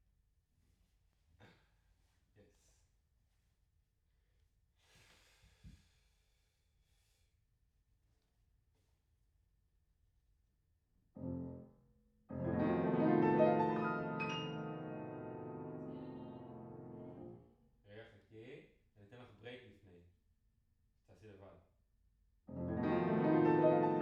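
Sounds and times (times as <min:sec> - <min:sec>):
piano in a room: 0:11.2 - 0:17.4, 0:22.5 - 0:23.9.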